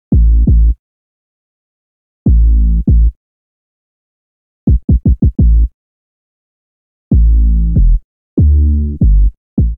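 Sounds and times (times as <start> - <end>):
old school bassline in A minor: 0.1 - 0.8, 2.3 - 3.2, 5.4 - 5.7, 7.1 - 9.7.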